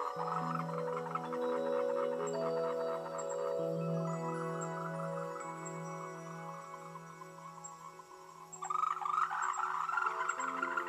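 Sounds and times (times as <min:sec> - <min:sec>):
frogs croaking in chorus: 0:00.0 - 0:10.8.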